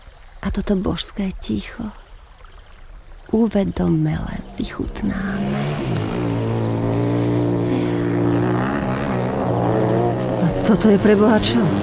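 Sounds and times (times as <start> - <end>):
speech: 0.4 - 2.0, 3.3 - 6.3, 10.7 - 11.8
motorcycles roaring past: 4.4 - 11.8.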